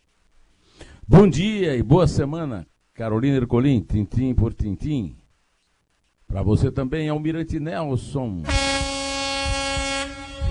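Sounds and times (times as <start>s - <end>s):
speech: 1.1s - 5.2s, 6.3s - 8.8s
siren: 8.5s - 10.4s.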